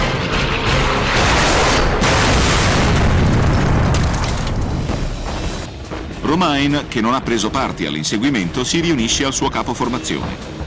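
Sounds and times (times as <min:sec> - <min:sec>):
Focke-Wulf fighter plane crashing with violent explosion: 0:00.1 - 0:04.9
speech: 0:06.4 - 0:10.5.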